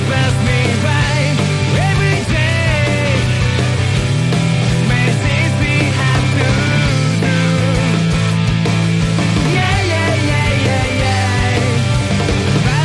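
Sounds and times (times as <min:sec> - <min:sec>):
indie guitar swing music: 0:00.0 - 0:12.8.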